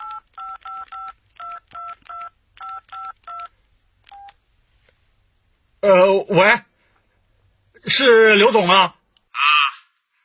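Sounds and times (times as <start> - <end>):
mobile phone keypad dialing tones: 0.0 - 3.5, 4.1 - 4.4
speech: 5.8 - 6.7, 7.8 - 9.0.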